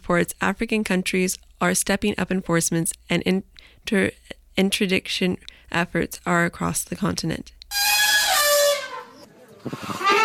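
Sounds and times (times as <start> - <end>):
speech: 0.1 - 7.9
elephant trumpeting: 7.7 - 10.2.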